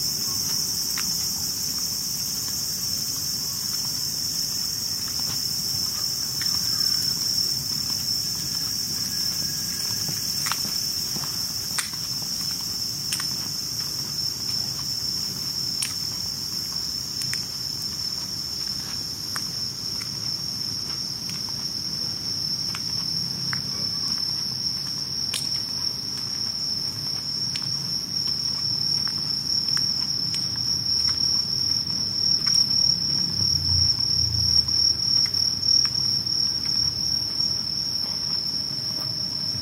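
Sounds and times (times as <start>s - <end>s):
crickets trilling on a summer night: 0.0s - 39.6s
soft low rumble: 33.0s - 34.9s.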